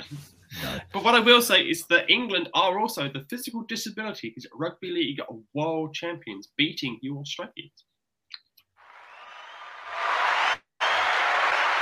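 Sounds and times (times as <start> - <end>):
speech: 0.0 - 7.9
applause: 8.8 - 11.8.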